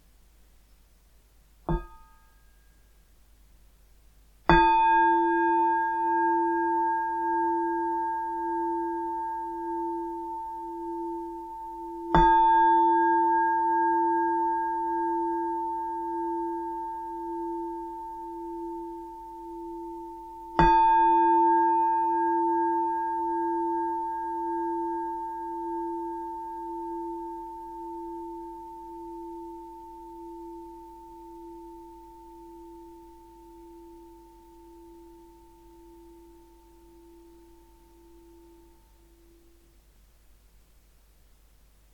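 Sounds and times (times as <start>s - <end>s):
meditation bells ringing: 4.6s - 39.5s.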